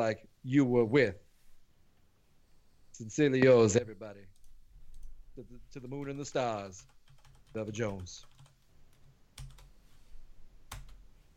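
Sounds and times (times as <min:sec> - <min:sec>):
speech: 0:00.0 - 0:01.2, 0:03.0 - 0:04.3, 0:05.4 - 0:08.3
low steady hiss: 0:00.0 - 0:11.3
faint computer keyboard typing: 0:06.8 - 0:09.7, 0:10.7 - 0:11.0.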